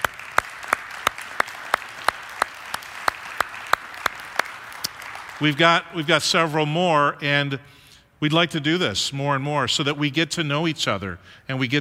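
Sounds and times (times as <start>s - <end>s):
audience clapping: 0.0s - 6.2s
speech: 5.4s - 11.7s.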